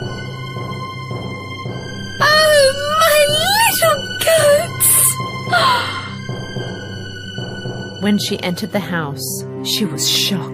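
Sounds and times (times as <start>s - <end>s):
woman screaming: 2.2s - 6.2s
speech: 8.1s - 10.5s.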